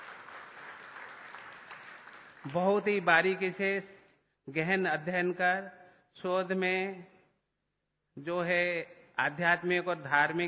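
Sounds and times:
faint audience applause welcoming a teacher and student at a stage ceremony: 0.0 - 2.9
speech: 2.4 - 7.1, 8.2 - 10.4.

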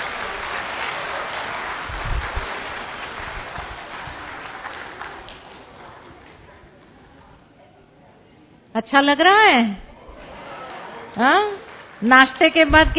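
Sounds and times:
audience clapping loudly to welcome a speaker: 0.0 - 6.5, 10.3 - 12.9
speech: 8.8 - 9.8, 11.2 - 12.9.

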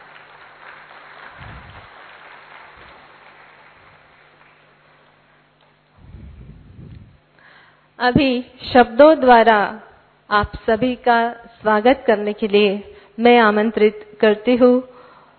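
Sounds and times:
audience clapping at a ceremony honoring a young woman: 0.0 - 5.7
speech: 8.0 - 14.9.

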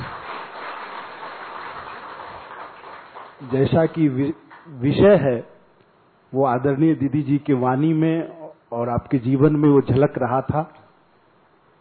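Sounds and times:
audience applause: 0.0 - 4.6
speech: 3.4 - 5.5, 6.3 - 10.8.

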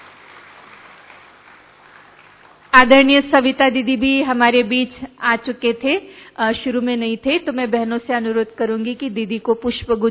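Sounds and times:
audience applause as a farewell: 0.0 - 2.7
speech: 2.8 - 10.0.

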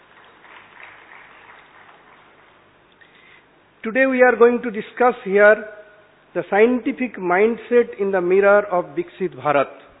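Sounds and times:
crowd clapping in a round of applause: 0.0 - 2.7
speech: 3.8 - 9.9.

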